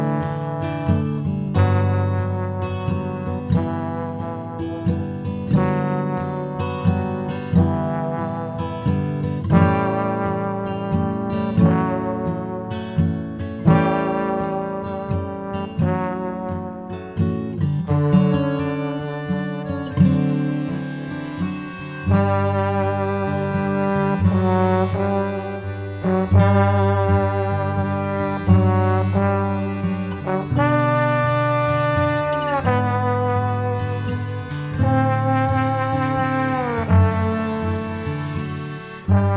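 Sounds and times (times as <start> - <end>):
waltz music: 0.2 - 39.3.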